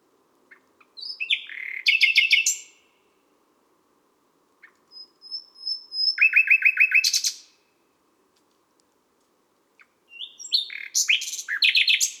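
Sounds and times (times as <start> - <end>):
common nightingale singing at midnight in Les Salelles, Ardeche: 0.5 - 2.8, 4.6 - 7.5, 9.8 - 12.1.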